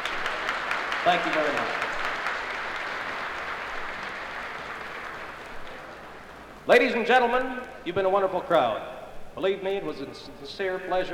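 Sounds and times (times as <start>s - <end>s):
crowd applause: 0.0s - 6.3s
speech: 1.0s - 1.9s, 6.7s - 11.1s.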